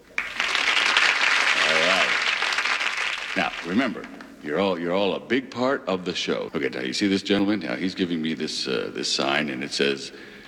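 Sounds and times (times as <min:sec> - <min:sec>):
studio audience applause: 0:00.0 - 0:04.3
speech: 0:03.4 - 0:10.4.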